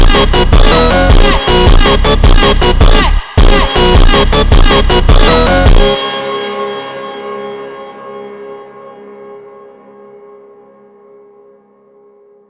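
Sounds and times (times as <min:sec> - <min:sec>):
super slowed reverb Brazilian phonk music: 0:00.0 - 0:09.0.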